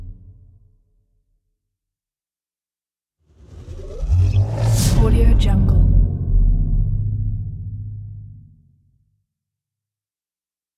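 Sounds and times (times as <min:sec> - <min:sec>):
cinematic impact: 0:03.4 - 0:08.9.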